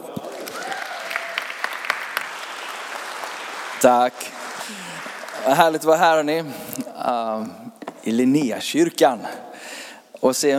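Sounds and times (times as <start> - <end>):
audience applause welcoming speaker: 0.0 - 6.2
speech: 3.8 - 10.5.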